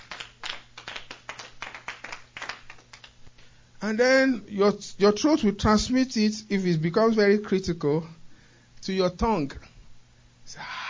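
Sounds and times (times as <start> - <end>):
audience clapping hands: 0.0 - 3.2
speech: 3.8 - 8.2, 8.8 - 9.7, 10.5 - 10.8.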